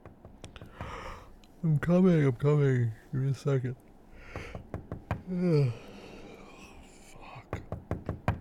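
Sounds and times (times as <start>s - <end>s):
knocking on a door: 0.0s - 1.0s, 4.3s - 5.3s, 7.5s - 8.3s
speech: 1.6s - 3.8s, 5.3s - 5.9s.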